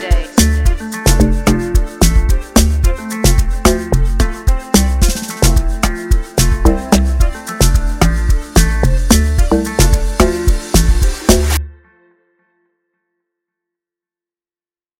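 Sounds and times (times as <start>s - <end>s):
beat: 0.0s - 11.6s.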